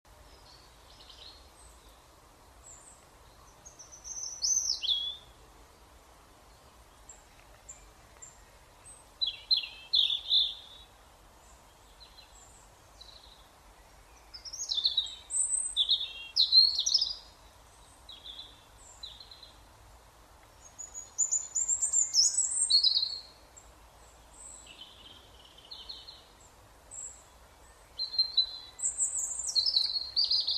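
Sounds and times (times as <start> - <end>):
European robin song: 0.1 - 30.5.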